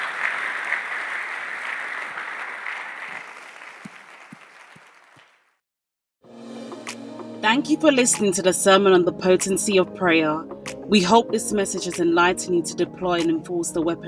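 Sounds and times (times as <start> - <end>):
audience clapping and cheering: 0.0 - 5.6
speech: 7.4 - 14.0.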